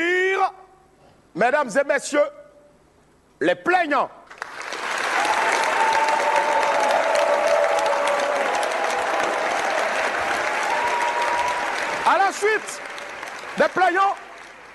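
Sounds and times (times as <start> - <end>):
speech: 1.4 - 2.4, 3.4 - 4.2, 12.3 - 12.9, 13.6 - 14.2
audience applause: 4.3 - 14.7.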